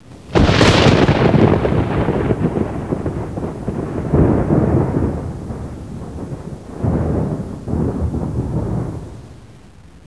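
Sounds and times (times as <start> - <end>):
thunder: 0.1 - 9.2.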